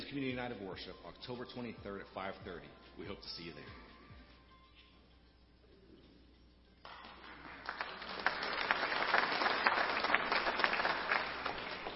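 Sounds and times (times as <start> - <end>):
speech: 0.1 - 3.9
audience applause: 6.9 - 11.9.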